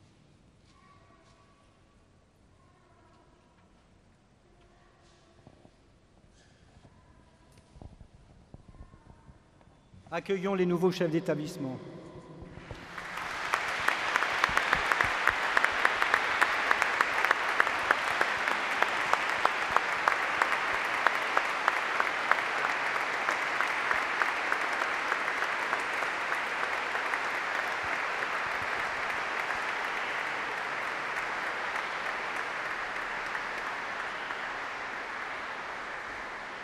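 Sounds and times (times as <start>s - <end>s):
speech: 10.1s - 12.0s
audience applause: 11.3s - 36.6s.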